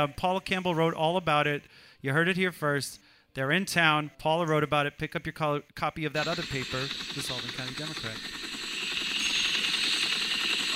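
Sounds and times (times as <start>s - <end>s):
speech: 0.0s - 8.5s
helicopter: 6.2s - 10.7s.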